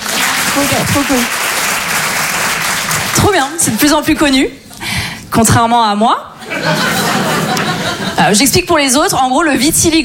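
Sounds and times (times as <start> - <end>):
comedy audience applauding: 0.0 - 3.4
speech: 0.6 - 1.4, 3.3 - 4.6, 5.3 - 7.3, 8.2 - 10.0
laughter: 6.4 - 8.3.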